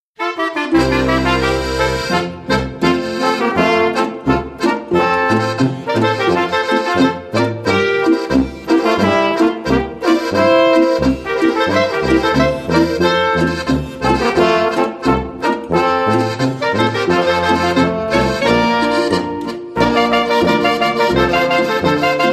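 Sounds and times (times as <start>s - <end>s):
Bavarian boarischer folk dance music: 0.5s - 22.3s.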